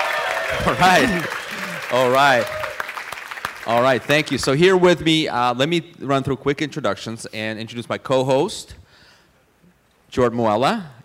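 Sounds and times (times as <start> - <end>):
about 200 property management entrepreneurs cheering and whooping at a live summit in West Palm Beach, Florida: 0.0 - 3.1
light applause at a live summit: 0.0 - 4.4
speech: 0.5 - 2.6, 3.7 - 8.8, 10.1 - 11.0.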